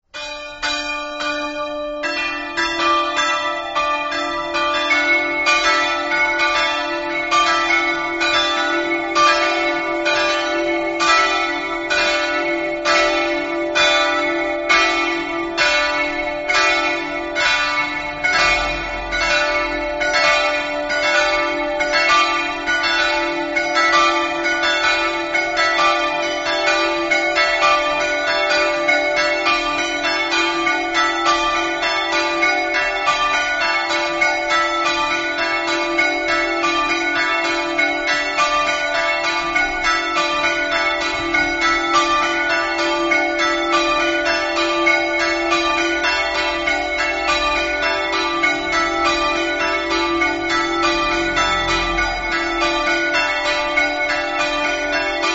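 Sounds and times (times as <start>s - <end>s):
bells ringing: 0.1s - 55.3s.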